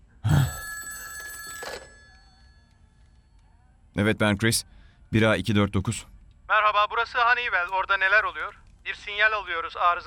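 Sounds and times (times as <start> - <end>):
telephone ringing with a bright bell tone: 0.4 - 3.1
speech: 4.0 - 10.0.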